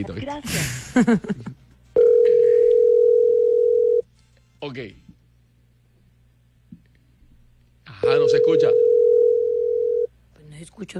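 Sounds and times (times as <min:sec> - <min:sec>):
speech: 0:00.0 - 0:01.6, 0:04.6 - 0:05.0, 0:08.0 - 0:09.0, 0:10.6 - 0:10.9
telephone dial tone while dialling a call: 0:02.0 - 0:04.0, 0:08.1 - 0:10.1.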